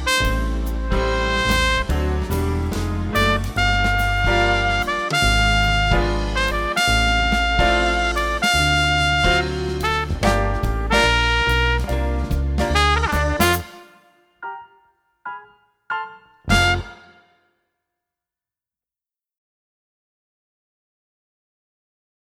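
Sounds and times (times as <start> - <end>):
trumpet solo: 0.0 - 14.6, 16.0 - 17.4.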